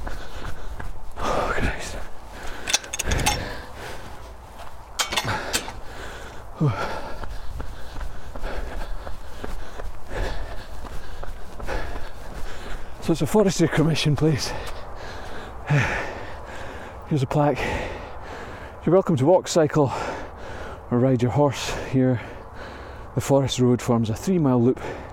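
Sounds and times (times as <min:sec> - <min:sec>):
running footsteps uphill on soaking wet ground in a Forestry Commission wood: 0:00.0 - 0:02.6, 0:03.4 - 0:18.8
heavy breathing and sighs: 0:00.0 - 0:13.2, 0:14.3 - 0:18.9, 0:19.9 - 0:20.9, 0:21.6 - 0:23.2, 0:24.8 - 0:25.1
speech: 0:06.6 - 0:06.9, 0:13.1 - 0:14.8, 0:15.7 - 0:16.0, 0:17.1 - 0:17.9, 0:18.8 - 0:20.0, 0:20.9 - 0:22.3, 0:23.2 - 0:24.9.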